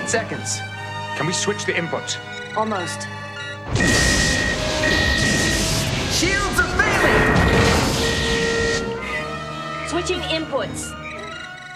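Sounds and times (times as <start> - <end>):
speech: 0.1 - 3.9, 6.2 - 7.2, 9.9 - 11.0
thin steady electronic tone: 3.4 - 9.1
explosion aboard a starship: 3.7 - 8.6.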